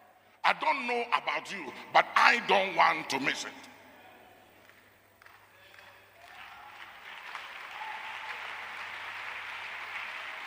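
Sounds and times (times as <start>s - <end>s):
speech: 0.5s - 3.7s
audience clapping: 4.5s - 10.4s.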